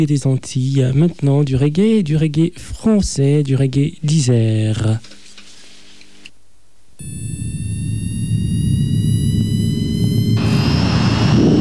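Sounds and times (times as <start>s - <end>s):
speech: 0.0s - 5.2s
airplane jet engine roaring, taking off for Pointe-à-Pitre: 7.4s - 11.5s.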